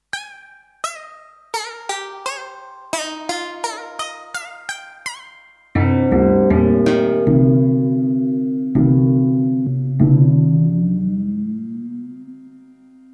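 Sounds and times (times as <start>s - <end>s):
DX7IIFD synthesized temple gong: 5.8s - 13.1s.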